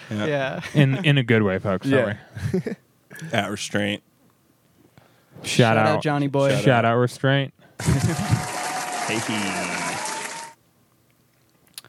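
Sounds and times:
speech: 0:00.1 - 0:04.1, 0:05.4 - 0:08.5, 0:09.1 - 0:09.8
crowd applause: 0:07.8 - 0:10.6.

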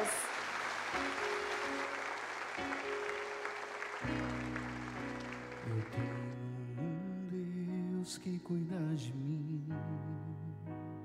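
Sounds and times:
audience applauding: 0:00.0 - 0:06.4
sustained organ or keyboard chords: 0:02.6 - 0:08.3, 0:09.7 - 0:11.0
speech: 0:08.3 - 0:10.8.

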